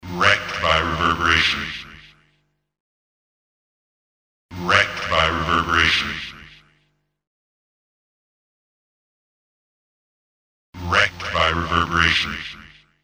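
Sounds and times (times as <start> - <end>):
industrial reverberant processed voice: 0.0 - 2.4, 4.5 - 6.9, 10.8 - 13.0.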